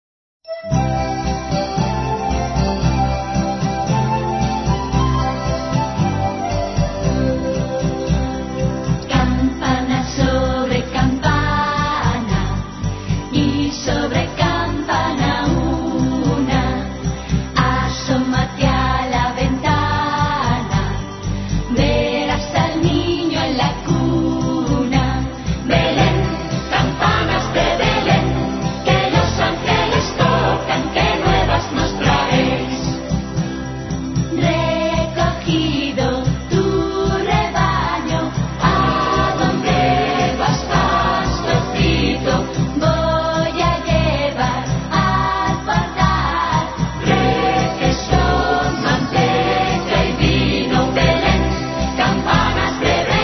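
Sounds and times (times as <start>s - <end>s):
Christmas carol: 0.5s - 53.2s.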